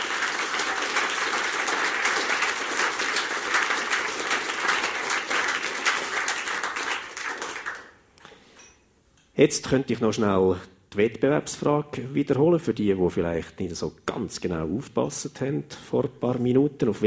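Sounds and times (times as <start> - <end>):
applause: 0.0 - 8.0
speech: 9.4 - 17.0.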